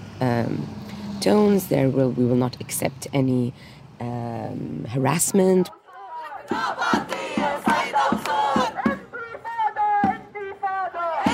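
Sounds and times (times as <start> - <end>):
speech: 0.2 - 5.8, 6.5 - 7.5
crowd chanting at a protest: 5.7 - 11.3.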